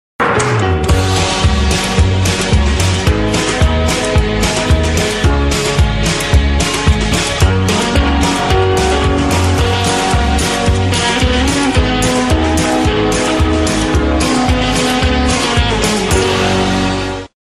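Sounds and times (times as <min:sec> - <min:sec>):
upbeat good mood music: 0:00.2 - 0:17.3.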